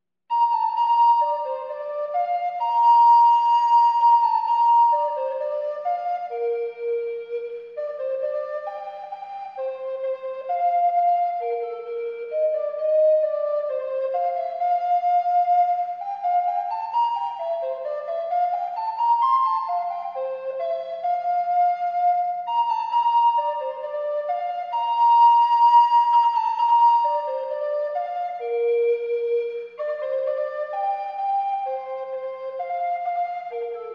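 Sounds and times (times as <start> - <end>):
prelude: 0.3 - 33.9.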